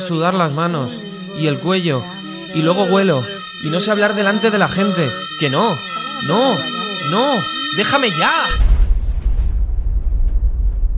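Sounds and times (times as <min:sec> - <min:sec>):
speech: 0:00.0 - 0:08.6
explosion sound effect: 0:08.5 - 0:10.9.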